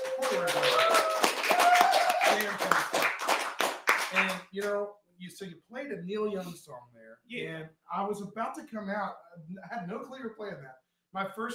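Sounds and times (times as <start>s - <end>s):
audience applause: 0.0s - 4.7s
speech: 0.3s - 0.8s, 4.6s - 11.5s.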